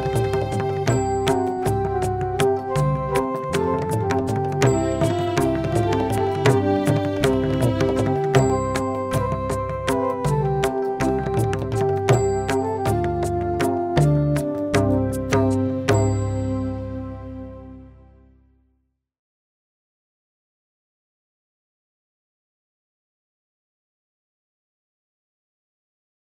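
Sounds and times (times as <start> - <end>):
instrumental music: 0.0 - 18.8.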